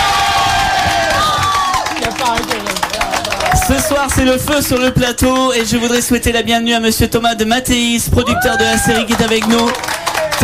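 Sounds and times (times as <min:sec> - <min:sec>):
audience cheering: 0:00.0 - 0:05.0, 0:08.2 - 0:10.4
audience applause: 0:00.0 - 0:06.1, 0:08.3 - 0:10.4
speech: 0:03.7 - 0:10.4.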